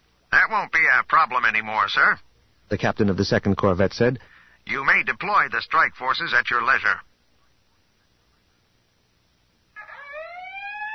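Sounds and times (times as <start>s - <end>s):
speech: 0.5s - 7.1s
howling alarm siren over intercom: 9.8s - 10.9s.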